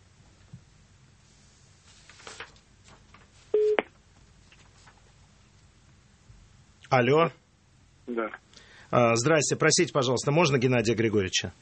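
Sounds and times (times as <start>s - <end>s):
telephone line tone: 3.6s - 3.8s
speech: 6.9s - 7.4s, 8.1s - 11.6s.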